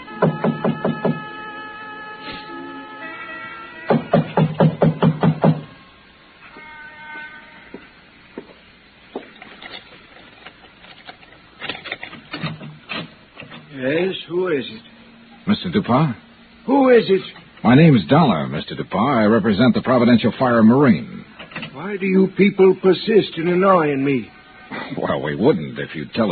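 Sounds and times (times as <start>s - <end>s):
knocking on a door: 0.2s - 1.3s, 3.9s - 5.7s
speech: 15.6s - 16.2s, 16.8s - 21.2s, 21.8s - 26.3s.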